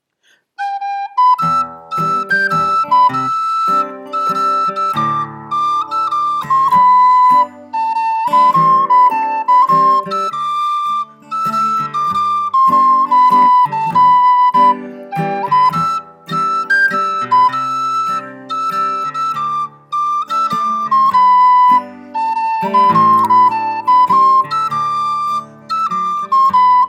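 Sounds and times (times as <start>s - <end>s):
mazurka: 0.6s - 26.8s.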